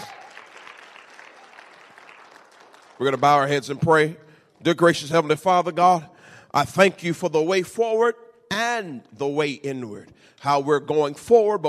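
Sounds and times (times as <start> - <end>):
church congregation clapping hands during a morning service: 0.0 - 4.8
speech: 3.0 - 11.6.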